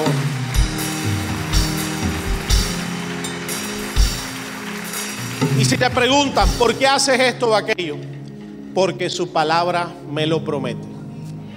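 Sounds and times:
large crowd applause: 0.0s - 7.0s
speech: 5.7s - 8.1s, 8.8s - 10.9s.

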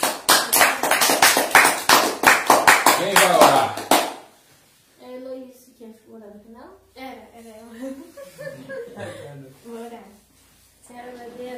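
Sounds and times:
clapping: 0.0s - 4.3s
laughter: 7.8s - 9.5s.

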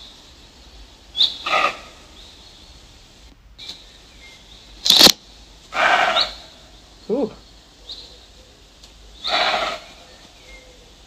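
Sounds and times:
deer call: 1.2s - 2.1s, 5.7s - 6.6s, 9.2s - 10.1s.

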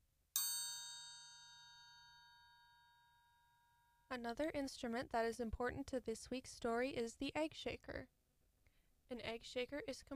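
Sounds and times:
triangle struck with the metal part of a vibraslap: 0.4s - 4.1s
speech: 4.1s - 8.2s, 9.1s - 10.1s.

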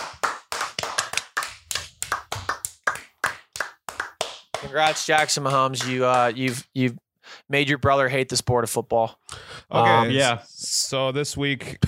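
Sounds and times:
round of applause: 0.0s - 6.6s
speech: 4.6s - 11.8s.

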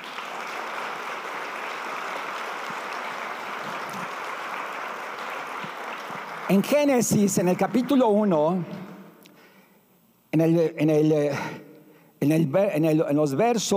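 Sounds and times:
audience ovation applause: 0.0s - 8.6s
speech: 6.5s - 8.8s, 10.3s - 11.6s, 12.2s - 13.7s.

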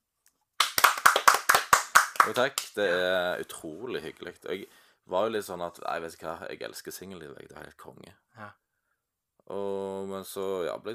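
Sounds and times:
hands clapping in applause: 0.6s - 3.0s
speech: 2.2s - 8.6s, 9.5s - 10.9s.

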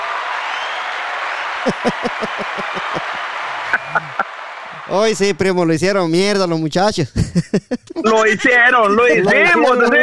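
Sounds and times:
applause: 0.0s - 5.5s
speech: 1.6s - 4.2s, 4.8s - 10.0s
laughter: 1.6s - 4.3s, 7.1s - 10.0s.

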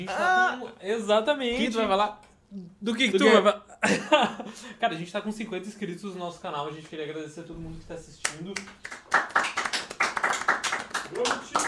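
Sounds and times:
speech: 0.0s - 9.5s, 11.1s - 11.6s
hand clapping: 8.2s - 11.6s.

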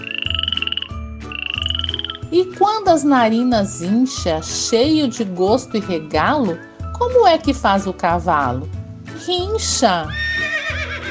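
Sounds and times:
frog croaking: 0.0s - 2.4s
speech: 2.3s - 10.2s.

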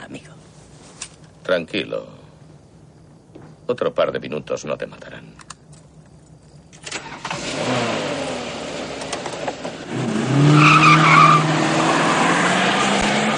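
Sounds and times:
speech: 1.5s - 2.2s, 3.7s - 5.3s
car engine revving and accelerating toward a truck: 7.0s - 13.3s
tires squealing: 7.0s - 13.3s.

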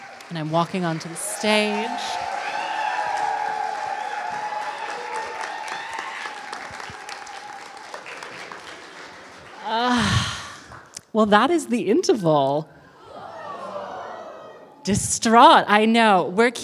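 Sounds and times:
large audience clapping: 0.0s - 11.0s
speech: 0.3s - 2.3s, 11.2s - 12.8s, 14.8s - 16.6s
cheer or whoop: 1.3s - 8.0s, 13.0s - 14.8s.

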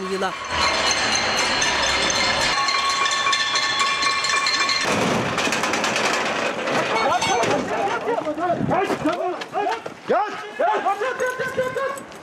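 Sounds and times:
speech: 0.1s - 1.6s, 8.1s - 12.1s
pots and spoons banged together: 0.4s - 8.1s
laughter: 7.5s - 8.6s, 10.6s - 12.1s.

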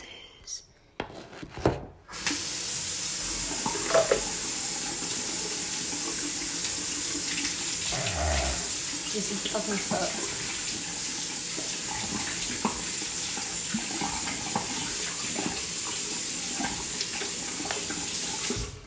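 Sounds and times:
knocks and handling noises: 1.0s - 2.0s
tap running while hands are washed: 2.0s - 18.8s
speech: 9.2s - 10.4s.

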